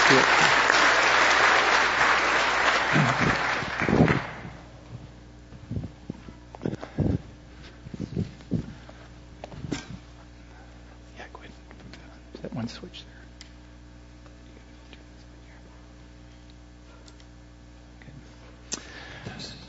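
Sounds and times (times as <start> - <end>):
audience applause welcoming people: 0.0 - 4.6
shuffling footsteps: 4.9 - 10.4.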